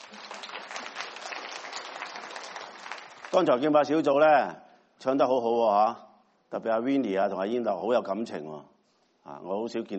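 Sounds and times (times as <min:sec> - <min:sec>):
audience applause: 0:00.0 - 0:03.5
speech: 0:03.3 - 0:09.9.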